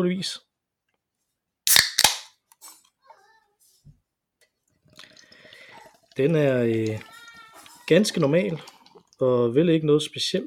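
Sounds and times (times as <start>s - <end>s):
speech: 0.0s - 0.5s, 6.2s - 7.1s, 7.9s - 10.4s
beer can being cracked open: 1.7s - 2.7s
carbonation fizzing: 4.8s - 9.4s
liquid gurgling: 4.8s - 9.5s.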